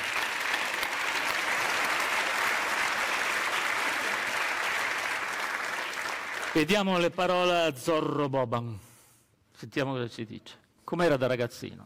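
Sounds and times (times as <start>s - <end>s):
audience applause: 0.0s - 6.7s
speech: 6.6s - 8.9s, 9.6s - 11.8s.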